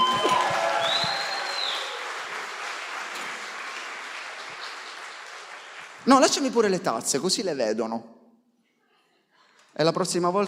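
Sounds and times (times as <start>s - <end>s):
audience applause: 0.0s - 6.6s
speech: 6.0s - 8.2s, 9.8s - 10.4s.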